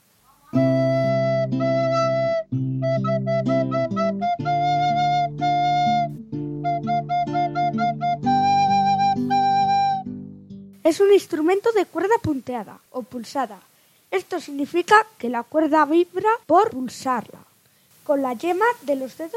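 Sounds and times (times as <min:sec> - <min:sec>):
flute playing a lively melody: 0:00.5 - 0:10.6
speech: 0:10.9 - 0:17.4, 0:18.1 - 0:19.3.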